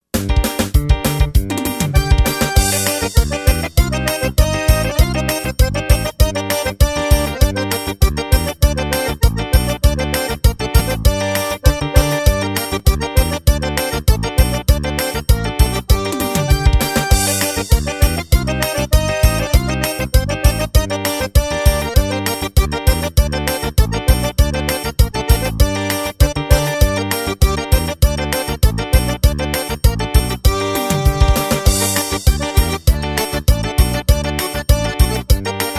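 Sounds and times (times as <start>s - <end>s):
xote music: 0.0s - 35.7s.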